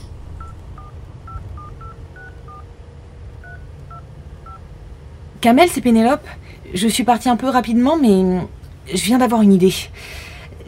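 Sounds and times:
low steady rumble: 0.0s - 10.6s
touch-tone beeps of a phone number being keyed in: 0.4s - 2.6s
speech: 5.4s - 10.2s.

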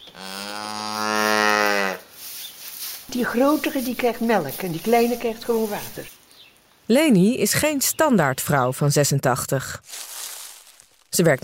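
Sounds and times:
dairy cow mooing: 0.2s - 2.0s
speech: 3.1s - 6.2s, 6.9s - 10.1s, 11.2s - 11.4s.

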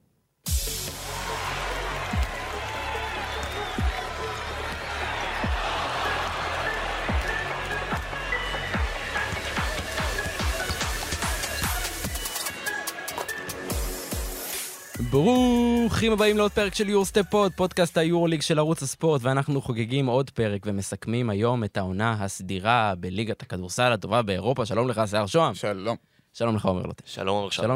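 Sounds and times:
opening theme music of a basketball show: 0.5s - 18.0s
speech: 15.2s - 27.7s.

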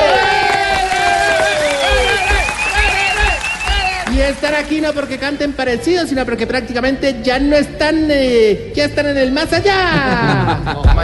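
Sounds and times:
whoops and cheering voices: 0.0s - 4.4s
audience applauding: 0.0s - 5.6s
laughter: 0.5s - 3.7s, 9.9s - 11.0s
speech: 4.3s - 11.0s.

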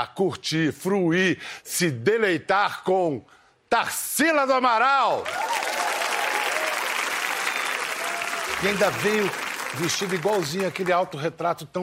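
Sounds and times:
speech: 0.0s - 5.6s, 8.6s - 11.8s
audience applause: 5.2s - 11.2s.

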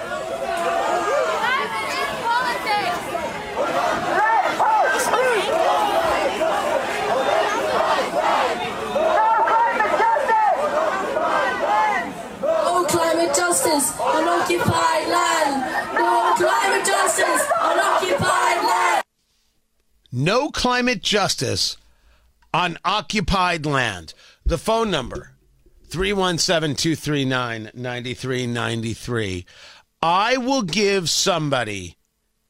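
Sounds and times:
protest crowd chanting: 0.0s - 19.1s
speech: 20.5s - 21.8s, 22.5s - 25.3s, 25.9s - 32.0s.

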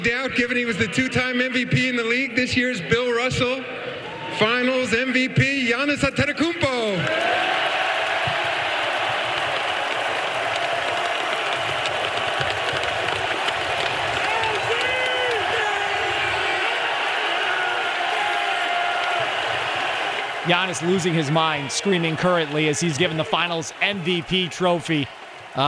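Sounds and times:
speech: 0.0s - 7.7s, 20.5s - 25.6s
packed arena crowd cheering and chanting MVP: 6.7s - 25.6s.

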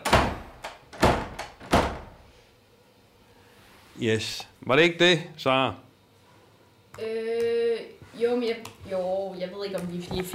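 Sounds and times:
door being banged: 0.0s - 2.2s
speech: 4.0s - 5.8s, 8.2s - 10.3s.

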